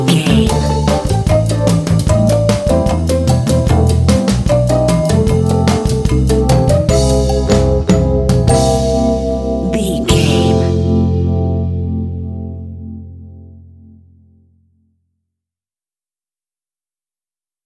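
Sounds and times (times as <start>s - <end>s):
kitschy elevator comedy lounge music: 0.0s - 12.0s.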